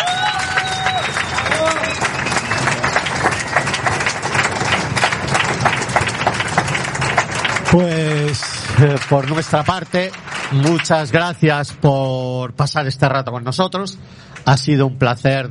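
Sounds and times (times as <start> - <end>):
whistles and cheers: 0.0 - 3.6
crowd applauding: 0.0 - 12.3
speech: 7.7 - 8.0, 8.8 - 15.4.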